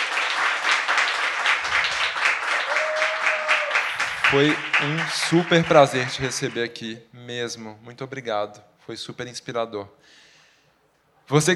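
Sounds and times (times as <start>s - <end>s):
applause: 0.0s - 6.8s
speech: 4.3s - 10.3s, 11.3s - 11.5s.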